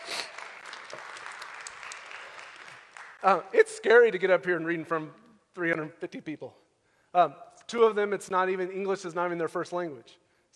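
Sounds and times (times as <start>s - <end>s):
audience clapping: 0.0s - 3.5s
speech: 3.2s - 10.5s.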